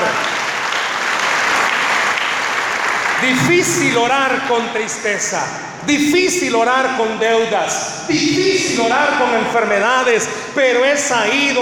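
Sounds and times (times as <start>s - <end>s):
audience applause: 0.0s - 3.8s
speech: 3.2s - 11.6s.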